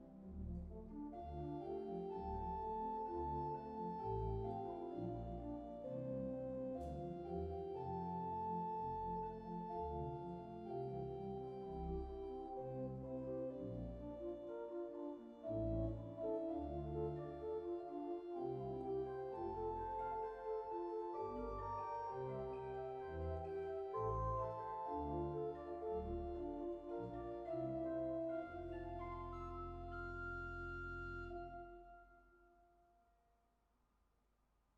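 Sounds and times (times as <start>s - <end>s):
organ: 0.2s - 31.9s.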